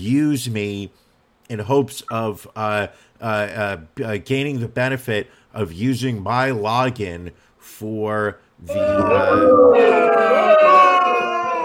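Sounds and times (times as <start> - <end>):
speech: 0.0 - 10.8
crowd booing sound effect: 8.7 - 11.6.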